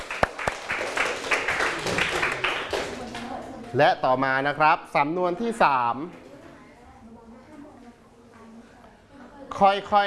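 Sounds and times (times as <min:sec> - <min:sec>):
applause: 0:00.0 - 0:03.3
speech: 0:03.7 - 0:06.2, 0:09.6 - 0:10.0.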